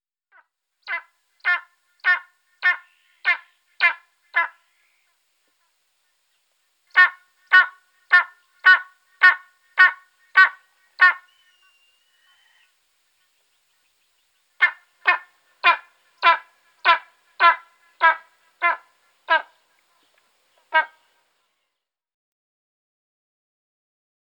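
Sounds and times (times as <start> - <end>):
Spanish imperial eagle harsh barking calls: 0.9 - 4.7, 6.9 - 12.7, 14.6 - 19.6, 20.6 - 21.1.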